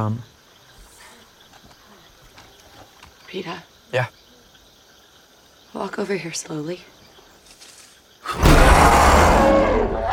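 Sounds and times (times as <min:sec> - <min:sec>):
speech: 0:00.0 - 0:00.3, 0:03.3 - 0:04.2, 0:05.7 - 0:07.0
baboon-like monkey roaring: 0:08.3 - 0:10.1.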